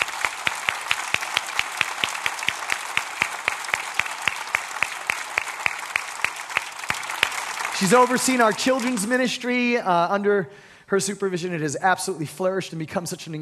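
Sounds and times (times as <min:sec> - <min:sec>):
audience applause: 0:00.0 - 0:09.3
speech: 0:07.8 - 0:13.4.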